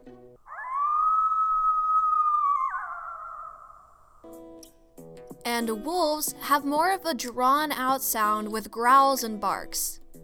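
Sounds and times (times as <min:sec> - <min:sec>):
coyote howling: 0:00.4 - 0:04.3
speech: 0:05.5 - 0:10.0.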